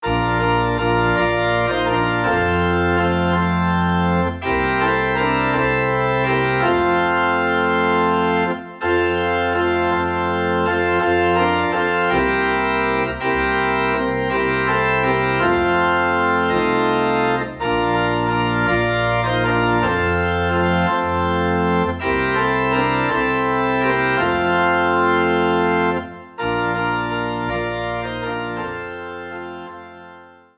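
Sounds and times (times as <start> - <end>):
organ playing in F: 0.0 - 30.5.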